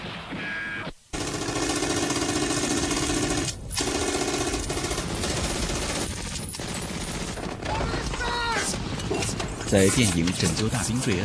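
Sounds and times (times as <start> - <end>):
German MG 34 machine gun firing long rapid bursts: 1.1 - 9.2
speech: 9.7 - 11.2.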